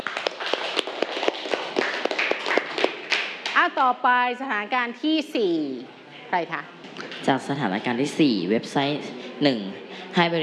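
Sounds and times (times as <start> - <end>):
classroom applause: 0.0 - 3.6
speech: 3.6 - 10.4.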